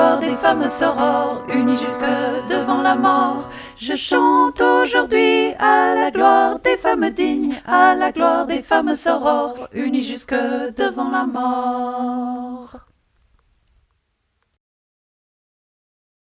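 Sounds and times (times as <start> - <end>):
full choir voices singing: 0.0 - 12.8.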